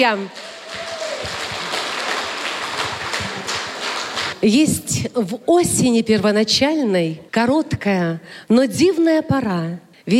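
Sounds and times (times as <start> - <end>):
speech: 0.0 - 0.5, 4.4 - 10.1
audience applause: 0.2 - 4.4.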